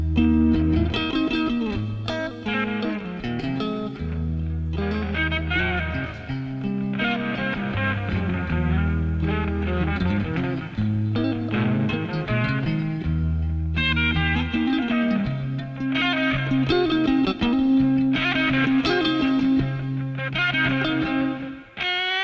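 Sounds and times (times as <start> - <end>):
guitar: 0.0 - 22.2.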